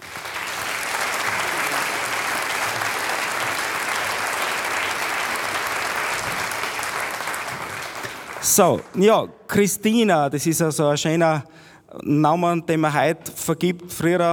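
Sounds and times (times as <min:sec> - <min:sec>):
audience applause: 0:00.0 - 0:09.0
speech: 0:08.5 - 0:14.3.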